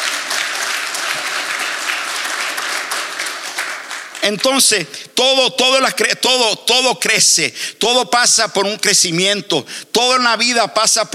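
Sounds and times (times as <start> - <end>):
audience applause: 0.0 - 4.6
speech: 4.2 - 11.1.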